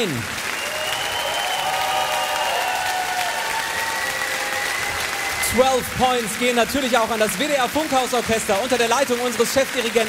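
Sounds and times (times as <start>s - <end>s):
speech: 0.0s - 0.4s, 5.5s - 10.0s
concert audience applause: 0.0s - 10.0s
faint whistles and cheers: 0.4s - 6.4s.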